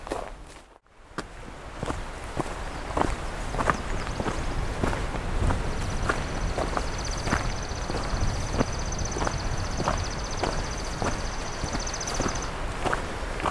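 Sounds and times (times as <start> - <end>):
footsteps crunching along a hiking trail: 0.0 - 13.4
thin high insect-like trill: 6.8 - 12.5.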